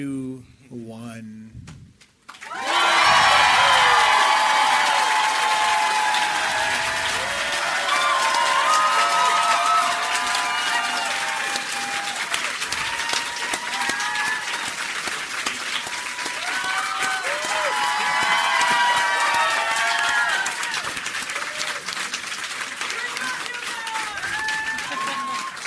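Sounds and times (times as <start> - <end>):
speech: 0.0 - 1.6
audience cheering: 2.4 - 25.6.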